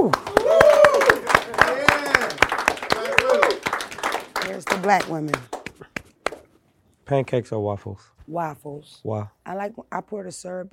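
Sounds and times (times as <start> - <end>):
hands clapping: 0.0 - 6.5
speech: 4.8 - 5.5, 7.1 - 10.7.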